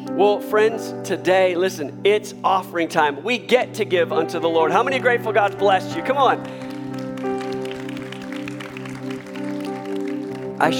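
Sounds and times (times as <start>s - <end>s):
speech: 0.2s - 6.6s, 10.6s - 10.7s
audience clapping: 5.2s - 10.7s.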